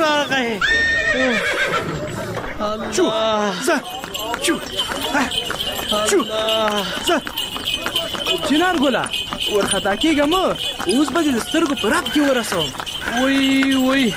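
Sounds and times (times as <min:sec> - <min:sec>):
horse neighing while pulling a buggy: 0:00.6 - 0:02.2
speech: 0:02.6 - 0:14.1.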